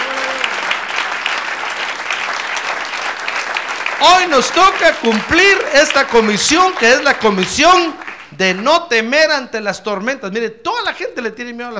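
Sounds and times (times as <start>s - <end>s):
audience applause at a religious gathering: 0.0s - 8.6s
speech: 4.0s - 11.7s.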